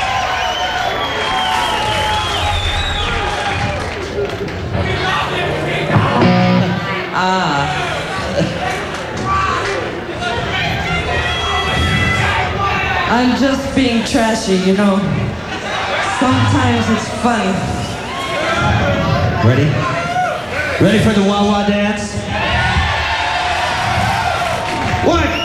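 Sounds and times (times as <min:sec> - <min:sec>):
laughter: 0:00.0 - 0:25.4
live show audience cheering and shouting wildly: 0:00.0 - 0:25.4
speech: 0:13.2 - 0:15.2, 0:16.2 - 0:17.8, 0:18.9 - 0:20.0, 0:20.8 - 0:22.2.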